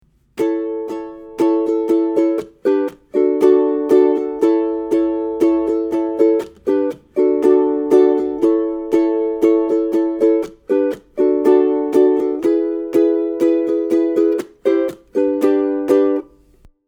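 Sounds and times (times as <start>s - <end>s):
ukulele verse strumming: 0.0s - 16.7s.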